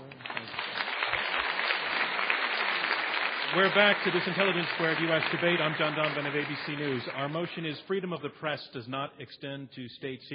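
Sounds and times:
audience applause: 0.0s - 7.7s
speech: 3.5s - 10.3s.

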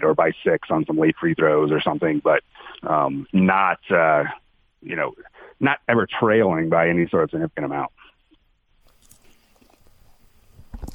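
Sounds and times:
speech: 0.1s - 8.0s
person chewing food: 8.9s - 10.2s.

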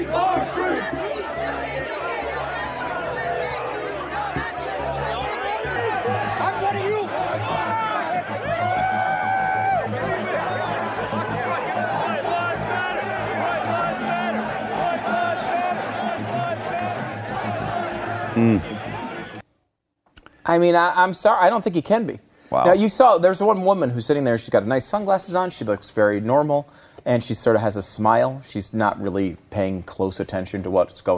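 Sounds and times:
large crowd chattering: 0.0s - 19.4s
raised shouts: 0.0s - 19.4s
speech: 20.5s - 31.1s.

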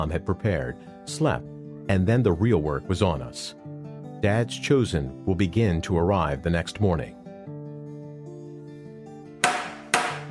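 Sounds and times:
speech: 0.0s - 3.6s, 4.2s - 7.2s
door knocker knocking: 9.4s - 10.2s.

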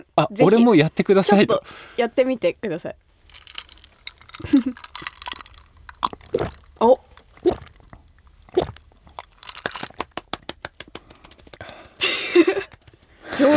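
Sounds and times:
speech: 0.2s - 3.0s, 4.4s - 4.9s, 6.4s - 7.6s
throat gulping while swallowing: 6.0s - 6.7s, 7.3s - 8.9s
laughter: 12.0s - 13.5s.

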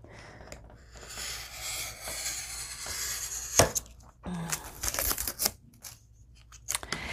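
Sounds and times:
long blade slicing a magazine: 0.9s - 3.9s, 4.7s - 6.0s
magazine pages rustling: 4.5s - 6.8s.

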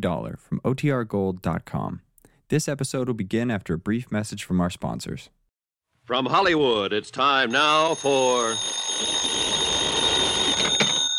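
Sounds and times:
speech: 0.0s - 5.4s, 6.1s - 9.6s
telephone ringing: 7.4s - 11.1s.

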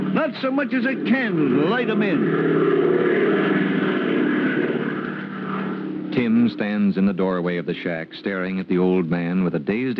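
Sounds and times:
airplane engine drone circling above a dark airfield at night: 0.0s - 9.9s
speech: 0.2s - 3.3s, 6.2s - 9.9s.

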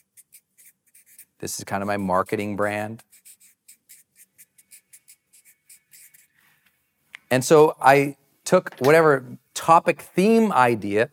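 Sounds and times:
pen scratching on paper as notes are written by hand: 0.0s - 6.4s
speech: 1.4s - 3.1s, 7.3s - 11.1s.

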